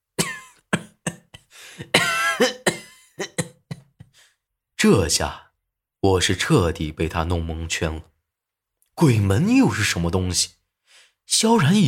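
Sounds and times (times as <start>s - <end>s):
violent coughing: 0.1s - 4.3s
speech: 4.8s - 5.4s, 6.0s - 8.1s, 9.0s - 10.6s, 11.3s - 11.8s.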